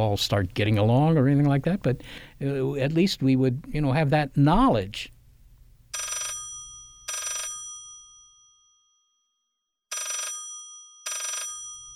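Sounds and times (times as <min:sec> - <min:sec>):
speech: 0:00.0 - 0:05.1
telephone ringing with metallic bell tones: 0:05.9 - 0:08.2, 0:09.9 - 0:11.9.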